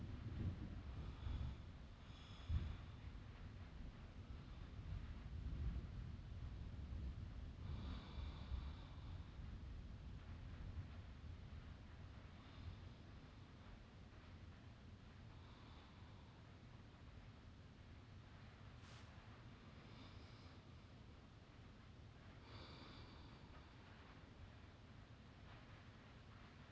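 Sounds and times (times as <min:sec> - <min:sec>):
rain: 0:00.0 - 0:19.9, 0:20.5 - 0:26.6
person breathing in bed: 0:00.9 - 0:03.1, 0:07.6 - 0:09.4, 0:15.3 - 0:16.6, 0:18.8 - 0:20.9, 0:22.2 - 0:24.2.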